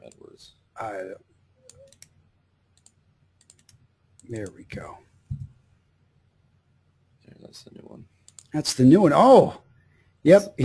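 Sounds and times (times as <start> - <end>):
low hum: 0.0 - 10.6
speech: 0.4 - 1.3, 4.3 - 5.1, 7.5 - 9.6, 10.2 - 10.6
computer keyboard typing a search into Amazon: 1.6 - 2.1, 2.8 - 4.9.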